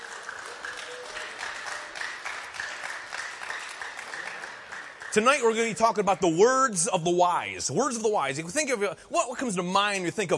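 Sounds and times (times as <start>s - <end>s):
round of applause: 0.0s - 6.1s
speech: 5.2s - 10.3s.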